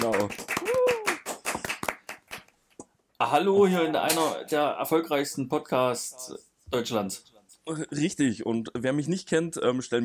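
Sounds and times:
crowd hand clapping: 0.0s - 2.6s
speech: 3.2s - 10.0s.

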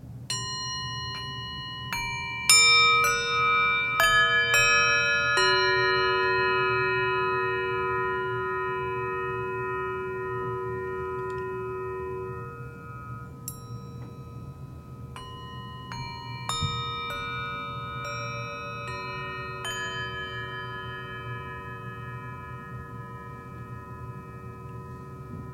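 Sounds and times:
seven singing bowls ringing: 0.0s - 25.5s.

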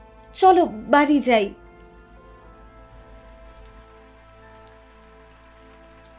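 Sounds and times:
speech: 0.4s - 1.6s
rain falling on surfaces: 2.2s - 6.1s.

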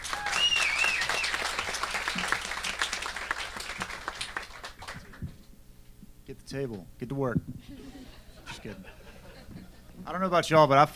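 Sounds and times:
faint whistles and cheers: 0.0s - 2.3s
crowd applauding: 0.0s - 5.4s
speech: 6.5s - 7.9s, 8.6s - 9.0s, 10.1s - 10.9s
laughter: 7.6s - 10.0s.

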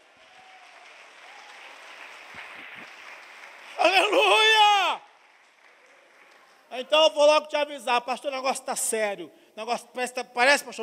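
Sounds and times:
audience applauding loudly: 0.0s - 7.0s
speech: 3.8s - 5.0s, 6.8s - 10.8s.

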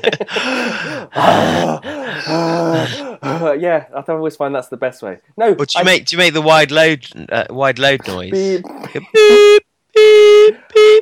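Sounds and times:
speech: 0.0s - 10.9s
person imitating deep heavy breathing: 0.2s - 3.5s.

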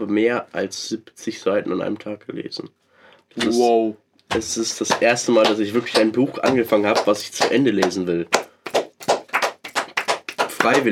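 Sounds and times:
speech: 0.0s - 8.4s, 10.6s - 10.9s
two people clapping: 4.3s - 10.9s.

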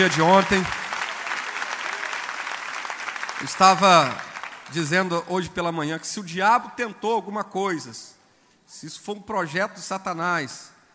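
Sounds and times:
speech: 0.0s - 0.8s, 3.4s - 10.7s
audience applause: 0.0s - 4.8s.

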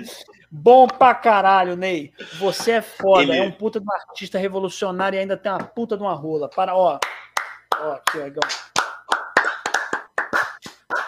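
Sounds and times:
speech: 0.0s - 8.8s
hands clapping in applause: 6.9s - 11.0s.

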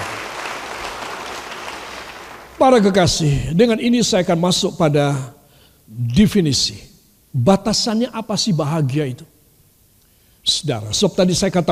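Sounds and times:
audience clapping: 0.0s - 2.9s
speech: 2.6s - 9.3s, 10.4s - 11.7s.

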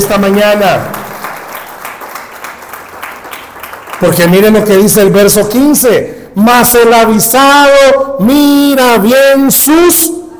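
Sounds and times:
applause: 0.0s - 4.7s
speech: 0.1s - 1.0s, 4.0s - 10.2s.

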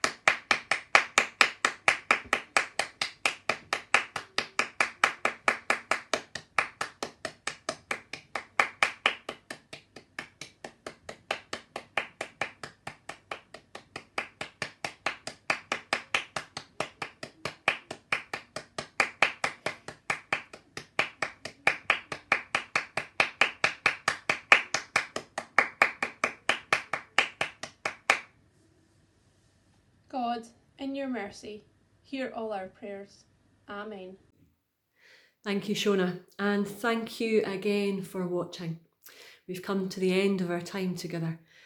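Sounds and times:
hands clapping in praise: 0.0s - 28.3s
speech: 30.9s - 34.3s, 35.4s - 38.8s, 39.5s - 41.4s.

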